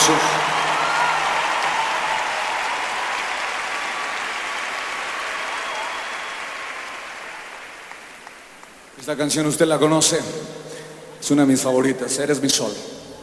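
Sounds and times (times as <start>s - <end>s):
speech: 0.0s - 0.5s, 9.1s - 13.0s
audience applause: 0.0s - 8.9s.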